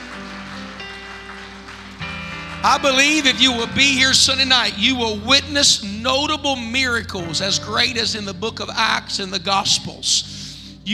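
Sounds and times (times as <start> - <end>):
audience clapping hands: 0.0 - 4.9
sustained organ-like tones: 0.0 - 10.9
speech: 2.6 - 10.9.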